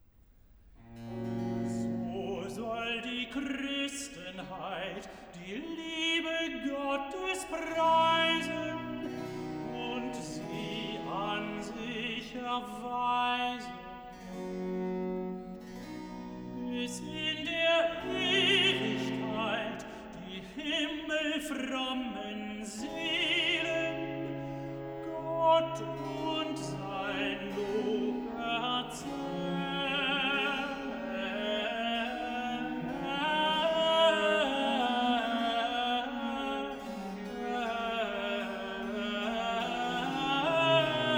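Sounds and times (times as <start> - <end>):
tenor singing a cantata recitative: 0.9 - 41.1.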